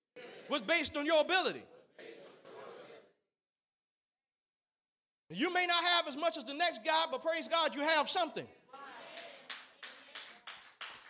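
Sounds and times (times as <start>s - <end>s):
speech: 0.2s - 1.7s, 5.3s - 8.6s
hand claps: 9.2s - 11.0s.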